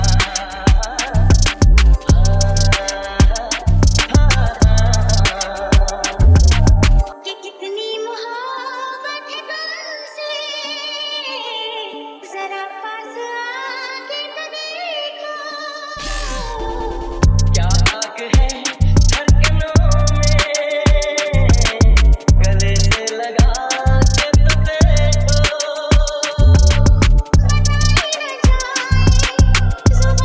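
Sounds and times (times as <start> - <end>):
drill music mix: 0.0 - 7.2, 16.0 - 30.2.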